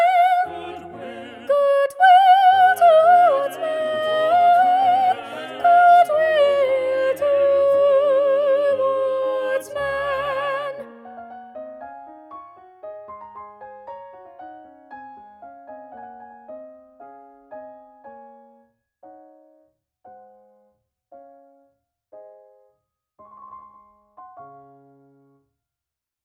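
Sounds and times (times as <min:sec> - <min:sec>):
soprano singing: 0:00.0 - 0:11.0.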